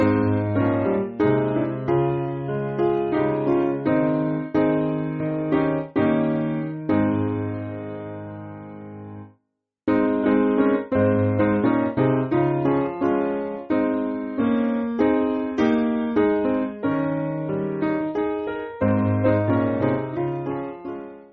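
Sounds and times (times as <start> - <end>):
piano piece: 0.0 - 9.3, 9.9 - 21.3.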